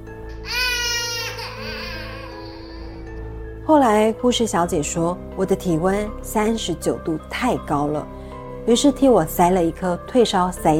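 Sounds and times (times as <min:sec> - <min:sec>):
child crying: 0:00.3 - 0:03.2
speech: 0:03.7 - 0:10.7.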